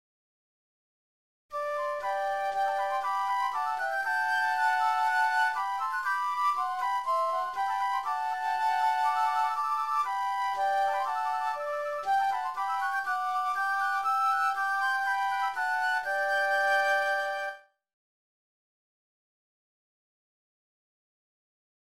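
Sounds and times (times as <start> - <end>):
flute: 1.5 - 17.8.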